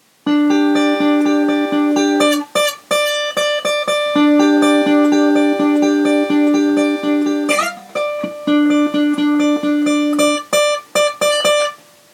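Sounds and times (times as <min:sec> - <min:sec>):
solo guitar medley: 0:00.2 - 0:11.9.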